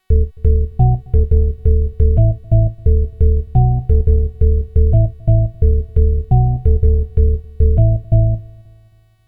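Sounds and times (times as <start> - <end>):
Modal Craft Synth 2.0 synthesizer: 0.0 - 8.9.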